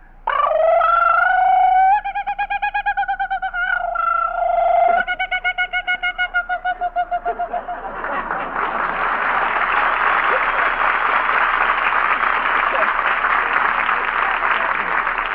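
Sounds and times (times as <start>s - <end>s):
human imitating kookaburra call: 0.3s - 7.8s
laughter: 6.6s - 15.2s.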